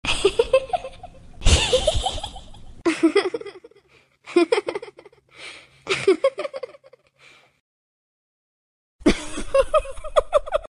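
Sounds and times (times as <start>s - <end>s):
person laughing: 0.0s - 5.2s, 5.9s - 7.1s, 9.0s - 10.6s.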